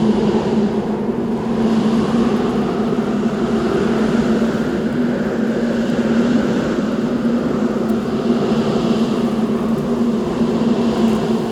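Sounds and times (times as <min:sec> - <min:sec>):
wind outside: 0:00.0 - 0:11.5.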